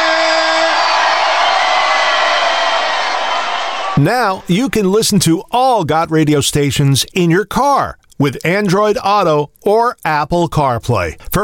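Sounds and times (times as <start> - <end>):
crowd cheering and whooping: 0.0 - 4.5
speech: 4.0 - 11.4.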